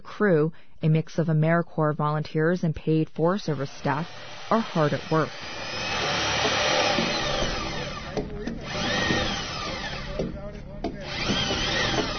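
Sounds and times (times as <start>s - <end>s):
speech: 0.2s - 5.8s
drilling holes into logs: 3.2s - 12.1s.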